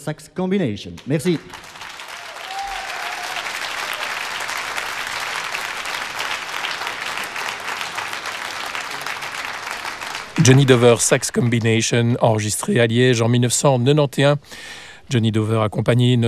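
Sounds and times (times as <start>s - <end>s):
speech: 0.0s - 1.8s, 10.4s - 16.2s
concert audience applause: 1.2s - 11.8s.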